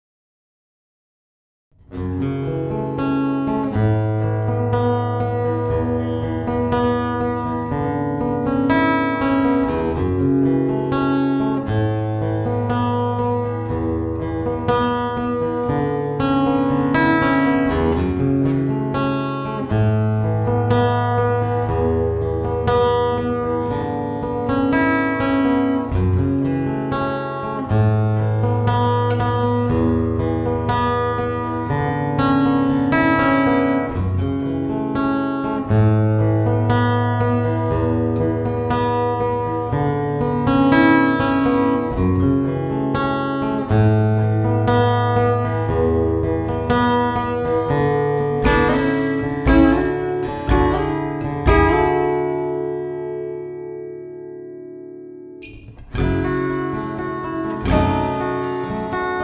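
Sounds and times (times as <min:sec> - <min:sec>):
acoustic guitar: 0:01.8 - 0:59.2.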